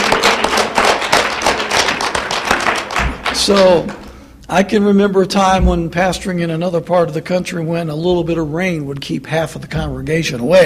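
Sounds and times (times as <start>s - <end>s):
audience applause: 0.0s - 4.1s
speech: 3.4s - 10.6s.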